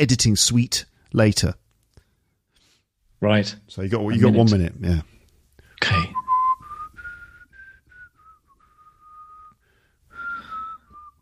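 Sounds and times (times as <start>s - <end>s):
speech: 0.0s - 1.6s, 3.2s - 5.1s
person whistling impatiently: 6.1s - 11.2s.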